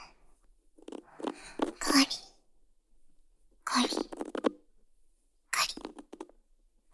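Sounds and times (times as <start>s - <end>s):
ear cleaning sounds for sleep: 0.8s - 2.0s, 3.7s - 4.5s, 5.5s - 6.3s.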